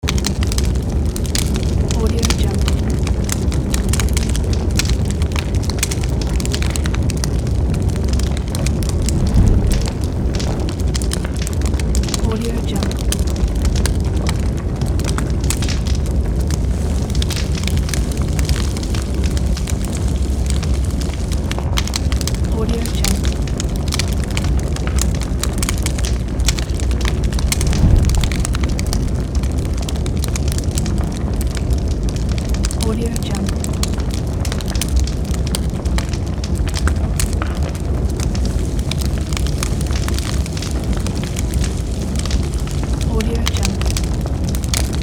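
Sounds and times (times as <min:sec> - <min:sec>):
fire: 0:00.0 - 0:45.0.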